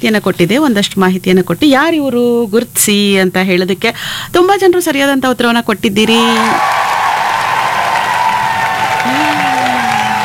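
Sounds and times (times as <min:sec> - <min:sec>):
speech: 0:00.0 - 0:06.8
applause for quiz listeners who answered correctly: 0:06.1 - 0:10.2.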